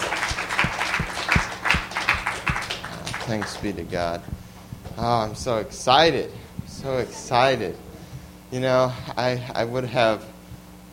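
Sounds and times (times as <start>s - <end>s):
church congregation clapping hands in unison: 0.0s - 4.2s
speech: 3.3s - 4.4s, 5.0s - 7.9s, 8.5s - 10.3s.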